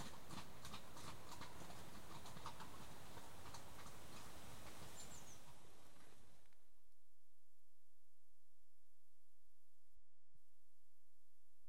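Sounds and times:
horse hooves clip-clopping on a hard surface: 0.0 - 6.6.

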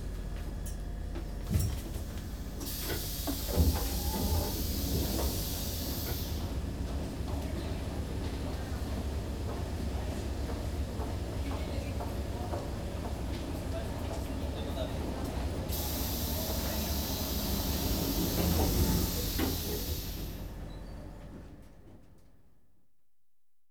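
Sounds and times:
London Underground trains: 0.0 - 22.6.

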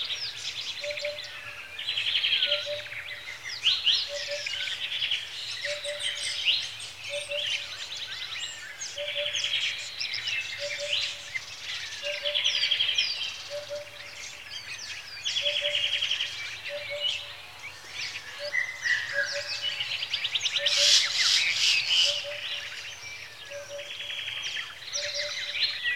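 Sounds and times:
birds at a lakeside: 0.0 - 25.9.

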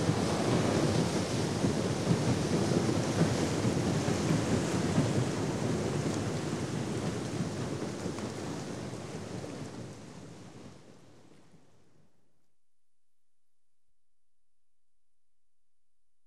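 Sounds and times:
paddle steamer departing dock: 0.0 - 11.4.

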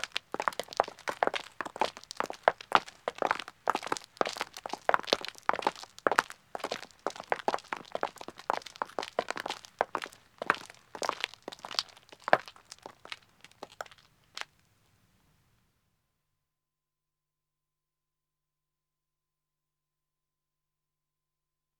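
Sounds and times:
two men's footsteps walking on a country road: 0.0 - 14.5.

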